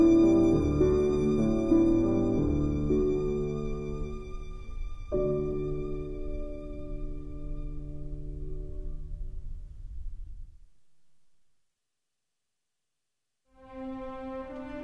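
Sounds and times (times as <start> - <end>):
violin: 0.0 - 8.6, 13.6 - 14.8
piano: 0.0 - 11.2, 13.5 - 14.8.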